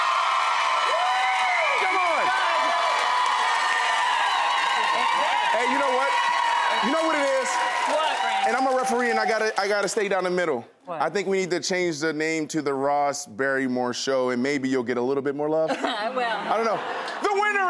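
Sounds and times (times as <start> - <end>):
studio audience screaming and cheering: 0.0 - 10.1
speech: 8.5 - 17.6
laughter: 15.7 - 17.6.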